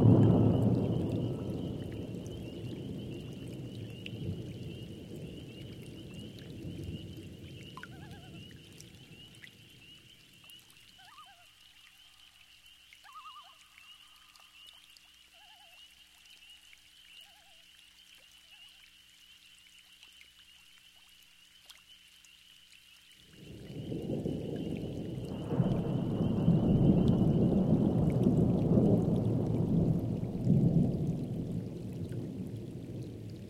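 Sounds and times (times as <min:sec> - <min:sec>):
thunderstorm: 0:00.0 - 0:09.9, 0:23.3 - 0:33.4.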